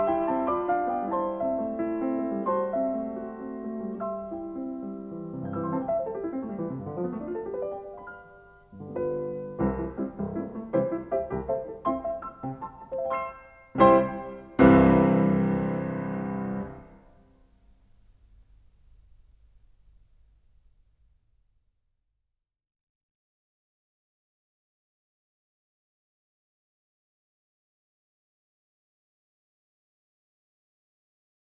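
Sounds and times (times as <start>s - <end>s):
piano intermezzo in C: 0.0s - 20.1s.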